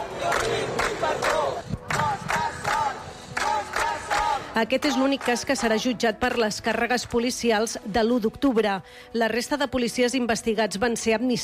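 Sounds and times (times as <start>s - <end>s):
crowd shouting support: 0.0s - 6.5s
speech: 4.6s - 11.4s.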